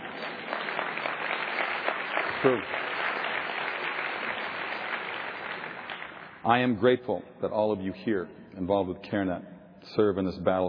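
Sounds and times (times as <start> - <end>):
audience applause: 0.0 - 6.4
speech: 2.4 - 2.8, 6.4 - 10.6.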